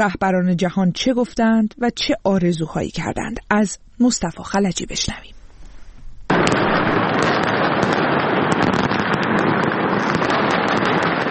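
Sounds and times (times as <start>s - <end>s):
speech: 0.0s - 5.4s
New Year fireworks over a city square: 6.0s - 11.2s.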